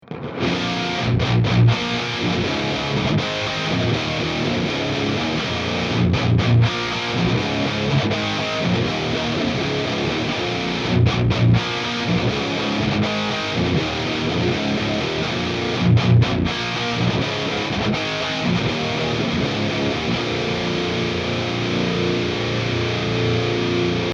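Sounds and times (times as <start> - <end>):
guitar: 0.0 - 24.1.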